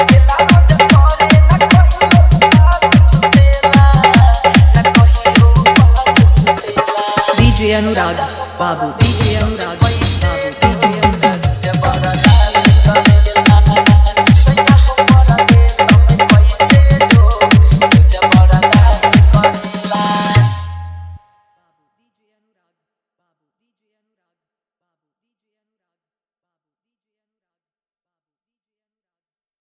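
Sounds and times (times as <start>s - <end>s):
dholak bass dance mix: 0.0s - 8.4s, 9.0s - 21.2s.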